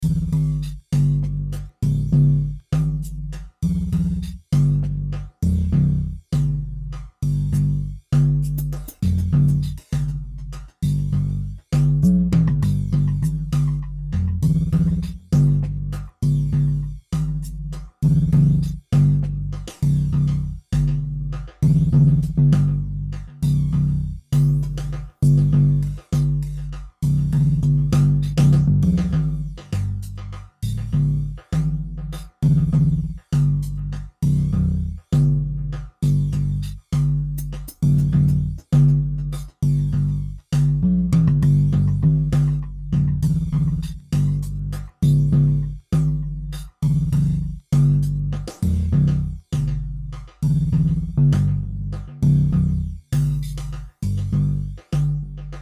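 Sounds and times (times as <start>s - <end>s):
drums: 0.0s - 55.6s.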